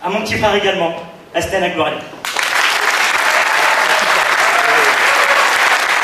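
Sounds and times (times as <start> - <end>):
speech: 0.0 - 2.2
thunderous audience applause at a live event in France: 2.2 - 6.0.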